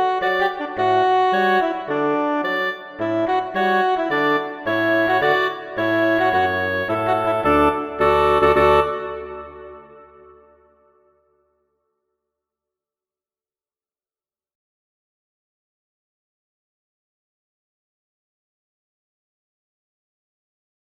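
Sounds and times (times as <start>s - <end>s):
woodwind quartet playing a march: 0.1s - 9.6s.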